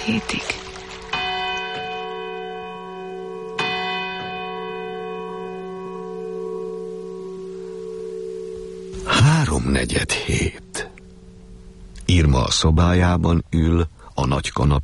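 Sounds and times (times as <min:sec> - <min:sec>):
speech: 0:00.0 - 0:00.6, 0:09.4 - 0:10.9, 0:12.1 - 0:14.8
clock tower bell tolling: 0:01.1 - 0:12.8.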